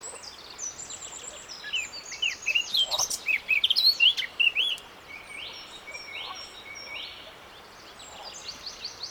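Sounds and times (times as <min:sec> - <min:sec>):
Eurasian blackcap (Sylvia atricapilla) song of rich varied warbling: 0:01.7 - 0:07.2.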